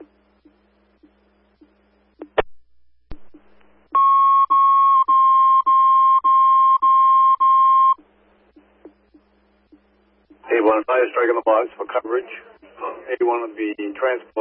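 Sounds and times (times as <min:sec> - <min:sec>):
fire dispatch alert tones: 0:04.0 - 0:08.0
speech: 0:10.8 - 0:12.5, 0:13.1 - 0:14.3.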